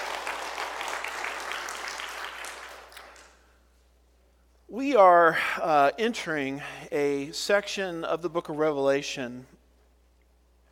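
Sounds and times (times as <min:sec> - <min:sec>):
audience applause: 0:00.0 - 0:03.4
speech: 0:04.8 - 0:09.6.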